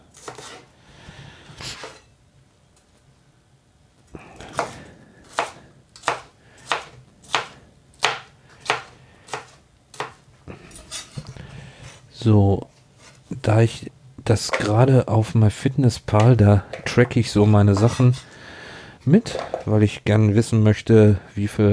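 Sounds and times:
knife cutting bell pepper into strips: 4.4s - 10.2s
speech: 12.2s - 12.7s, 13.5s - 18.3s, 19.0s - 21.7s.

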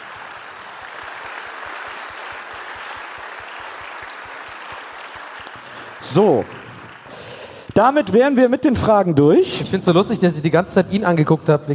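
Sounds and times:
audience applause: 0.0s - 7.7s
speech: 6.1s - 6.6s, 7.8s - 11.7s.

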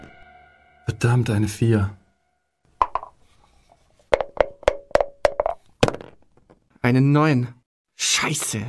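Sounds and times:
speech: 0.9s - 2.0s, 6.9s - 8.6s
dice being rolled: 2.8s - 3.2s, 4.1s - 6.7s.

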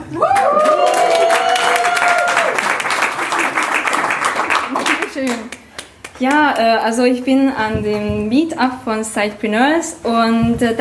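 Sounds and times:
audience cheering and clapping: 0.0s - 6.4s
speech: 6.2s - 10.7s.

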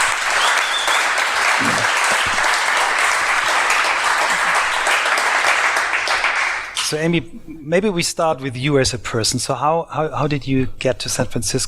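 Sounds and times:
live audience applause: 0.0s - 6.8s
speech: 6.9s - 11.6s.

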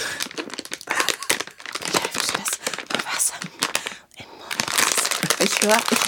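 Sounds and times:
plastic packaging being torn open: 0.0s - 6.0s
speech: 5.6s - 6.0s.

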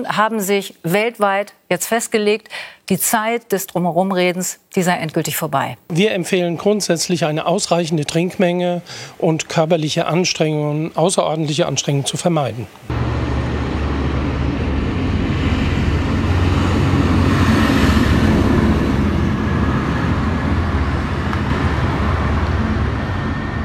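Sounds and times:
speech: 0.0s - 13.2s
several tractors driving past: 12.9s - 23.6s.

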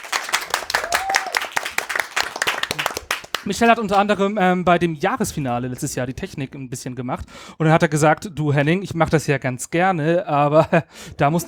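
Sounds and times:
audience applause: 0.0s - 4.1s
speech: 2.8s - 11.4s.

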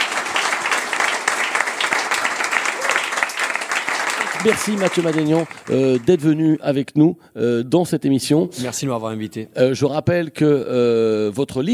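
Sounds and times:
audience applause: 0.0s - 6.6s
speech: 4.4s - 11.7s.

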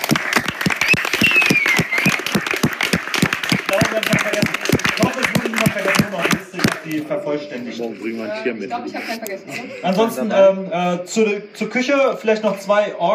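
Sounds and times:
audience applause: 0.0s - 6.9s
speech: 7.0s - 13.1s.

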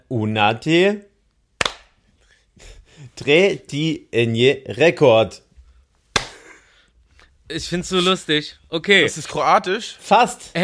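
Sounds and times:
speech: 0.1s - 1.1s, 2.6s - 5.4s, 7.5s - 10.6s
hand clap before recording: 1.6s - 2.0s, 6.1s - 6.6s.

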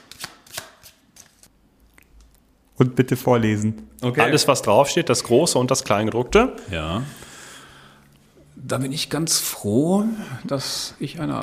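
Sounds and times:
cards being shuffled vigorously before a weekly task card is drawn: 0.0s - 1.5s
speech: 2.8s - 7.3s, 8.7s - 11.4s.

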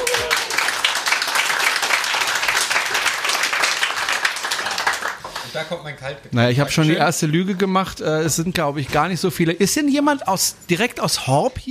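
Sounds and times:
audience in Horb applauding: 0.0s - 5.5s
speech: 5.6s - 11.6s.

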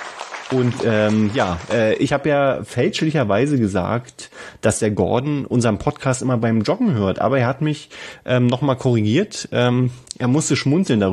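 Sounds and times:
applause: 0.0s - 2.0s
speech: 0.5s - 11.1s.

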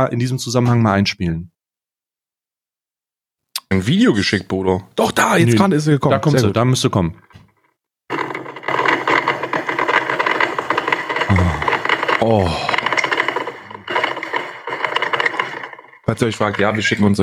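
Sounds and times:
speech: 0.0s - 1.5s, 3.7s - 7.4s, 12.2s - 12.7s, 16.1s - 17.2s
coffee machine running: 8.1s - 17.2s.

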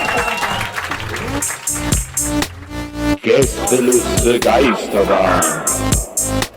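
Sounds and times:
audience clapping hands: 0.0s - 3.9s
speech: 3.3s - 6.4s.

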